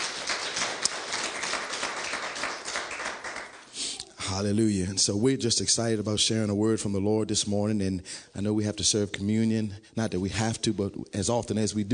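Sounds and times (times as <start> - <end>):
audience clapping: 0.0 - 3.8
speech: 4.3 - 11.9.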